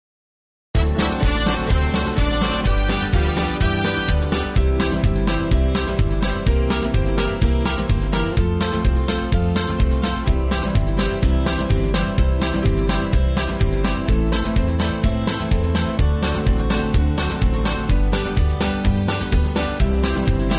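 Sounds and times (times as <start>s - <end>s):
square dance gospel rhythm track: 0.8s - 20.5s.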